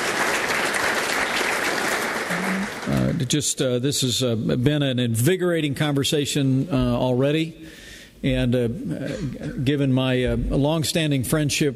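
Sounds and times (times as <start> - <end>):
audience applause: 0.0 - 3.3
speech: 3.2 - 11.7.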